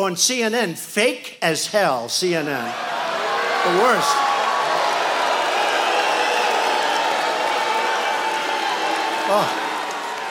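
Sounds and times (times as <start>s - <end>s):
speech: 0.0s - 3.0s, 3.6s - 4.3s, 9.3s - 9.6s
rally crowd roaring whistling and booing: 2.7s - 10.2s.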